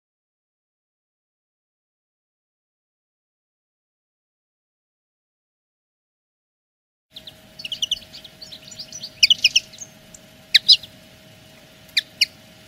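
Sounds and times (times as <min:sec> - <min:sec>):
wild-caught common linnet singing twitters and whistled notes: 0:07.1 - 0:12.6.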